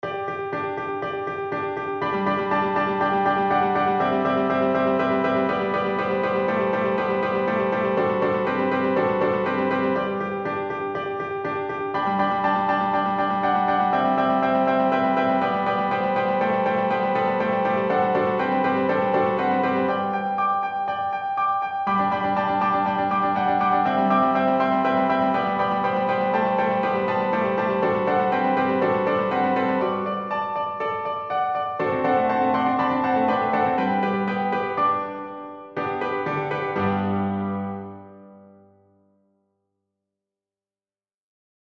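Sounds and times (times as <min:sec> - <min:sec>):
prelude in G: 0:00.0 - 0:39.2.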